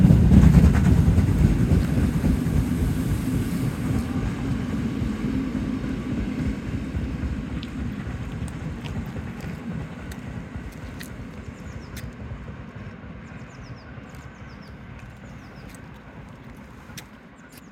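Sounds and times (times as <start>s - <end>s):
steam locomotive 50 3648 chuffing pulling away from Großbothen: 0.0s - 17.7s
faint high chirps and clicks: 8.5s - 12.2s, 13.4s - 17.7s.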